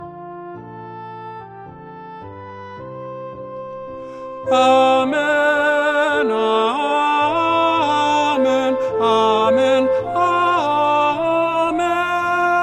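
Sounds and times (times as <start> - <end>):
community descant singing: 4.4 - 12.6.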